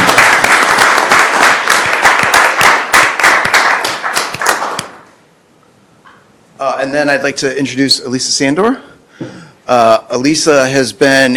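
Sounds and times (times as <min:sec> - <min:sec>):
crowd applause: 0:00.0 - 0:05.0
speech: 0:06.8 - 0:11.3.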